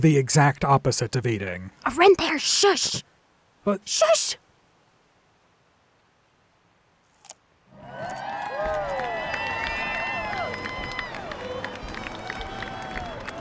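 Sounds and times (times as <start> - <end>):
speech: 0.0 - 4.4
crowd cheering: 7.7 - 13.3
many voices whooping and shouting together: 7.8 - 13.3.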